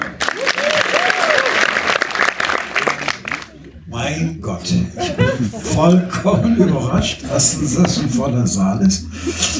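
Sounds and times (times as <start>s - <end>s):
cinema audience applause: 0.0s - 3.5s
speech: 4.1s - 9.5s
laughter: 4.8s - 8.3s, 9.2s - 9.5s.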